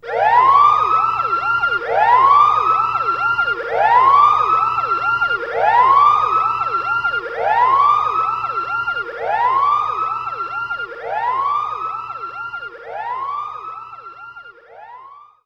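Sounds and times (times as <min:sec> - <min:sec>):
lab alarm: 0:00.0 - 0:15.4.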